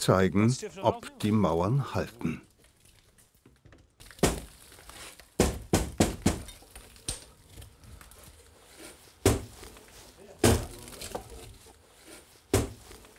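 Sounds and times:
speech: 0:00.0 - 0:02.5
heavy thuds and knocks of a window broken out of masonry during renovation: 0:05.4 - 0:06.5, 0:09.2 - 0:09.6, 0:12.5 - 0:12.8.

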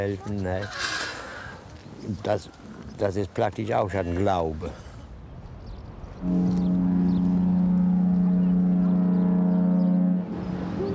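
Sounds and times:
speech: 0:00.0 - 0:01.0, 0:02.0 - 0:04.8, 0:06.2 - 0:06.5
boat horn blast: 0:06.2 - 0:10.9.

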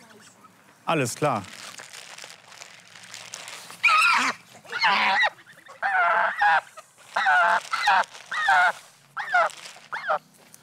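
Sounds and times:
speech: 0:00.9 - 0:01.6
bird calling while being caught for ringing: 0:04.7 - 0:10.3.

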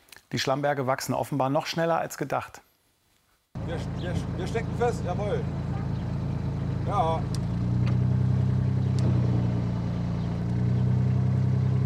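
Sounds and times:
speech: 0:00.3 - 0:02.7, 0:03.7 - 0:05.7, 0:06.9 - 0:07.4
boat engine droning: 0:03.6 - 0:11.8.

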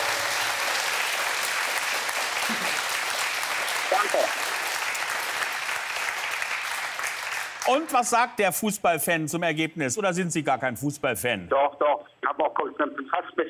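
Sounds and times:
studio audience applause: 0:00.0 - 0:08.0
speech: 0:02.5 - 0:02.7, 0:03.9 - 0:04.6, 0:07.7 - 0:13.4.

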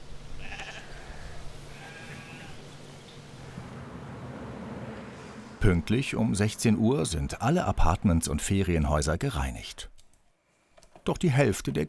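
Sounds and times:
flock of sheep bleating: 0:00.4 - 0:02.6
speech: 0:05.6 - 0:09.9, 0:11.1 - 0:11.8.

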